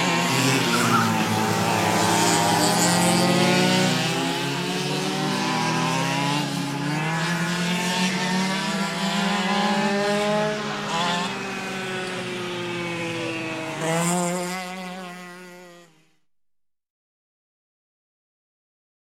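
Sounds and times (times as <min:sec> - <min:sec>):
go-kart engines: 0:00.0 - 0:16.2.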